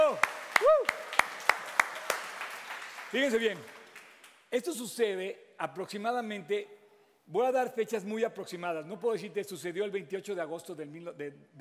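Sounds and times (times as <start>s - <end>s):
audience vocal cheer: 0.0s - 1.1s
audience applause: 0.0s - 4.4s
speech: 3.1s - 3.8s, 4.5s - 11.5s.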